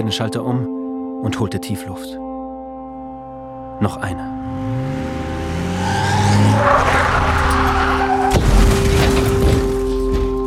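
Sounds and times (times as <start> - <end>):
speech: 0.0 - 2.2, 3.8 - 4.8
roaring car engine: 4.3 - 8.3
car skidding and rumbling: 4.4 - 9.8
car tires squealing: 5.0 - 8.4
tire bursting bang: 6.5 - 10.0.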